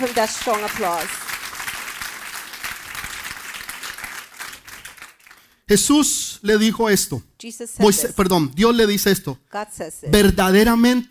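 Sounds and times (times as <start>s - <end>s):
speech: 0.0s - 1.3s, 5.7s - 11.0s
audience applause: 0.0s - 5.6s.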